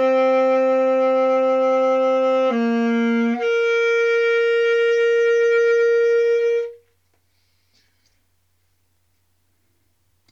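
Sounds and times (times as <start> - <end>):
saxophone: 0.0 - 6.9.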